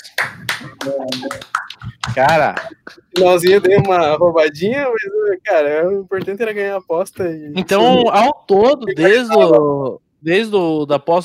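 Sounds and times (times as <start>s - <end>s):
hand clapping: 0.0s - 4.5s
speech: 0.6s - 11.2s.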